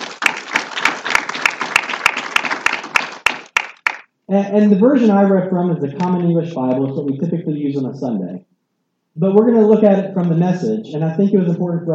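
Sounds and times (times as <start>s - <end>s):
church congregation applauding to welcome a scripture reader: 0.0s - 4.1s
speech: 4.3s - 8.5s, 9.2s - 11.9s.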